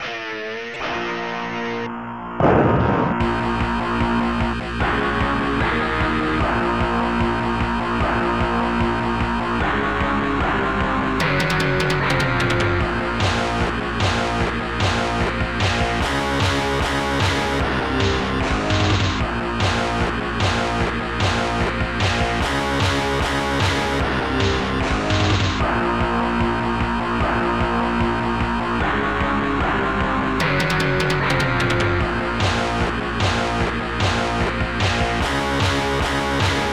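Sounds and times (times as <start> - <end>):
death metal music: 0.0 - 36.7.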